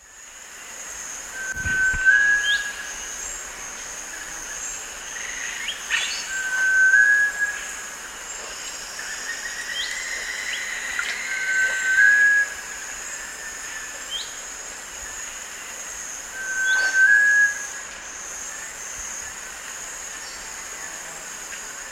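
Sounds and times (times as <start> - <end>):
Sunbittern whistles in the eastern lowlands of South America: 1.3 - 3.4, 6.0 - 7.9, 10.5 - 12.7, 16.3 - 17.8.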